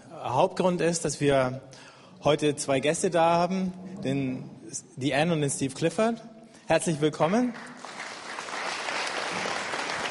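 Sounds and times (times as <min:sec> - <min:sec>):
speech: 0:00.2 - 0:07.8
audience applause: 0:07.6 - 0:10.1.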